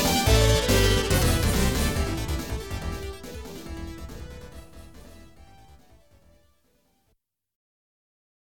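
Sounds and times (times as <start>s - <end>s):
fight sounds: 0.0s - 4.8s.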